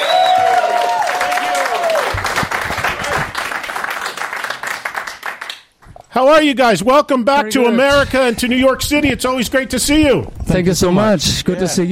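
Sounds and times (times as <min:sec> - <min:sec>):
high whistling cheer: 0:00.0 - 0:02.3
audience cheering: 0:00.0 - 0:04.8
audience clapping: 0:00.0 - 0:05.8
speech: 0:06.2 - 0:11.9.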